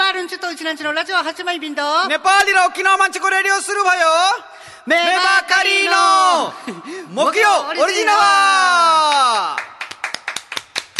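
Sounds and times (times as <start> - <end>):
speech: 0.4 - 9.7
one person clapping hands: 9.1 - 10.9.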